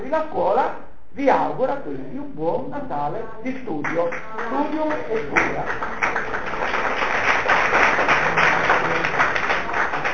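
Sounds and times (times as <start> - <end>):
speech: 0.1 - 6.8
audience applause: 4.9 - 10.1.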